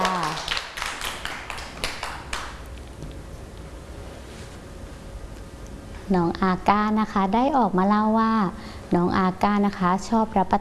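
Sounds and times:
children clapping: 0:00.0 - 0:02.6
speech: 0:06.1 - 0:10.6.

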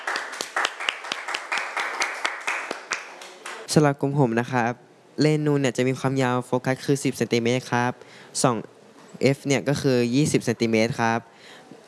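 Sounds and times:
group applause for presenters: 0:00.0 - 0:03.7
speech: 0:03.7 - 0:11.6.

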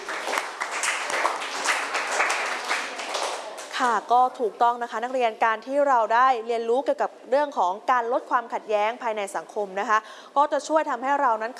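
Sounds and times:
classroom applause for a student: 0:00.0 - 0:03.8
speech: 0:03.8 - 0:11.5.

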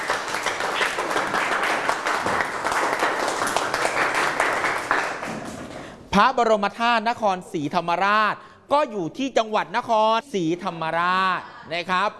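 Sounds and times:
classroom applause for a student: 0:00.0 - 0:05.9
speech: 0:06.2 - 0:12.1.

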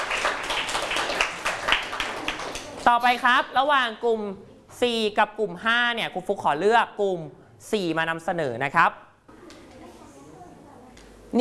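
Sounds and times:
classroom clapping: 0:00.0 - 0:02.8
speech: 0:02.9 - 0:09.1.

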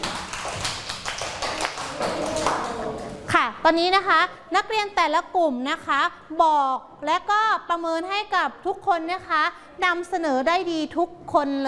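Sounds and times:
class of people clapping in a classroom: 0:00.0 - 0:03.3
speech: 0:03.6 - 0:11.6.

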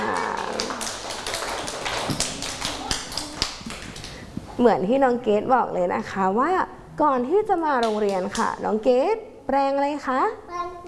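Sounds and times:
children clapping: 0:00.0 - 0:04.2
speech: 0:04.6 - 0:10.8.

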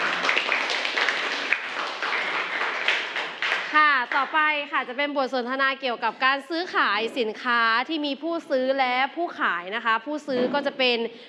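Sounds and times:
audience clapping: 0:00.0 - 0:04.5
speech: 0:04.2 - 0:11.2.

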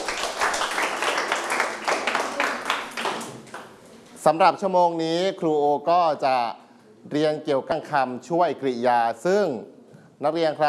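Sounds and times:
classroom students clapping: 0:00.0 - 0:03.8
speech: 0:04.2 - 0:10.6.

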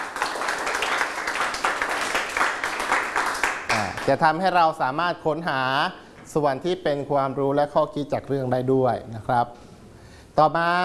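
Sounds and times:
classroom applause for a classmate: 0:00.0 - 0:04.2
speech: 0:04.0 - 0:09.6, 0:10.4 - 0:10.8.

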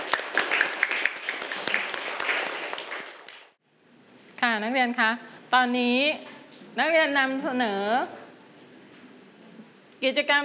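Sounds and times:
classroom students applauding classmates: 0:00.0 - 0:03.6
speech: 0:04.6 - 0:08.2, 0:10.0 - 0:10.4.

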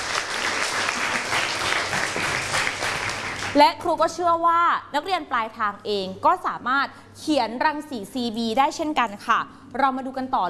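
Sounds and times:
classroom applause for a student: 0:00.0 - 0:03.6
speech: 0:03.6 - 0:10.4.

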